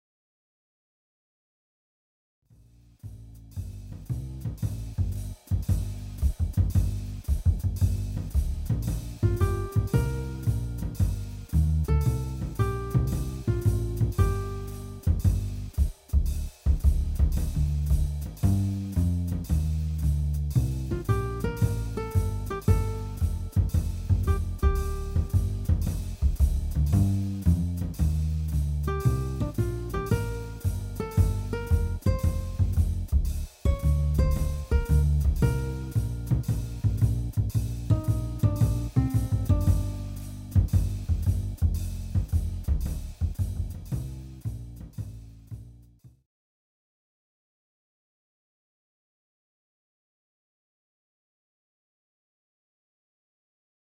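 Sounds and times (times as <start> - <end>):
score music sample: 3.1 - 45.8.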